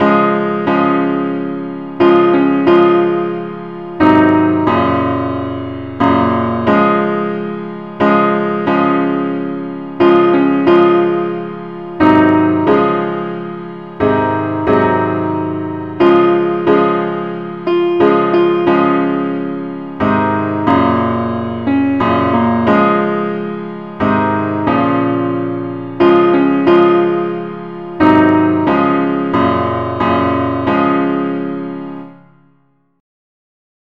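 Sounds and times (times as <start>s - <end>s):
simple accompaniment music: 0.0s - 32.9s.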